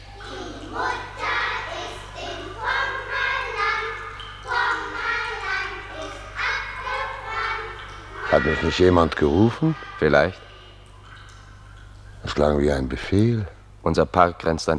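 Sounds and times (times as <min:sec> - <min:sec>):
children singing a round song: 0:00.0 - 0:10.8
low constant hum: 0:00.0 - 0:14.7
speech: 0:08.4 - 0:10.5, 0:12.3 - 0:14.7.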